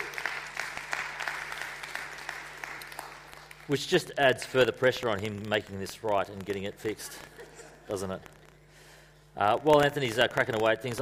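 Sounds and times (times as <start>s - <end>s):
room full of people clapping: 0.0s - 4.2s
speech: 3.7s - 7.3s, 7.9s - 8.4s, 9.4s - 10.9s.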